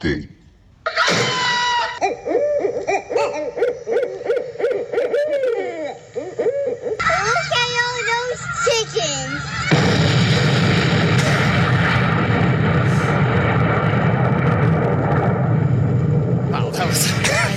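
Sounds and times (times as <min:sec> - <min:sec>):
laughter: 0:00.8 - 0:09.9
long explosion trailing off: 0:09.4 - 0:17.5.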